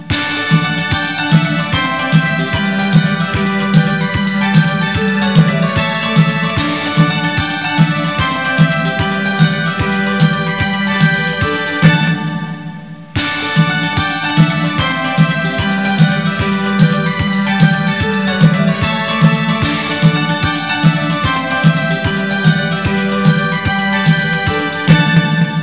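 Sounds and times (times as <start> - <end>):
tune: 0.0 - 25.6.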